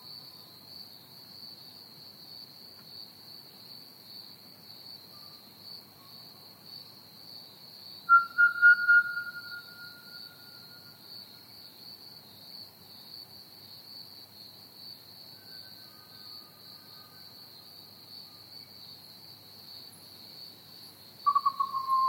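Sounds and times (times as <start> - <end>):
Pied Butcherbird whistling: 8.1 - 10.7, 21.3 - 22.0.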